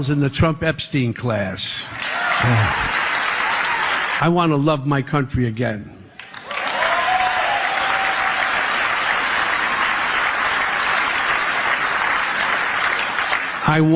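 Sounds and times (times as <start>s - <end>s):
speech: 0.0s - 3.0s, 4.2s - 6.0s, 13.7s - 13.9s
audience applause: 2.0s - 4.4s, 6.2s - 13.9s.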